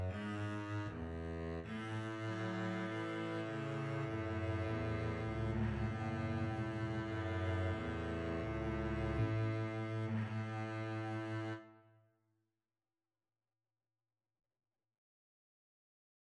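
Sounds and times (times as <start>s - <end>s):
double bass duet: 0.0s - 11.7s.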